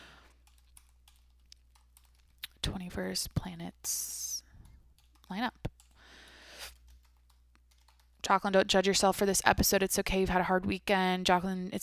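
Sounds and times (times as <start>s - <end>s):
typing a web search on a computer keyboard: 0.2s - 2.5s, 4.6s - 8.2s
speech: 2.6s - 4.3s, 5.3s - 5.7s, 8.3s - 11.8s.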